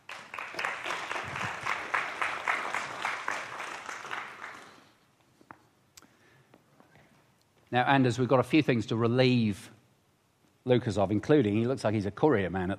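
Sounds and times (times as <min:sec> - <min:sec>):
audience applause: 0:00.0 - 0:05.0
speech: 0:07.7 - 0:09.8, 0:10.6 - 0:12.7.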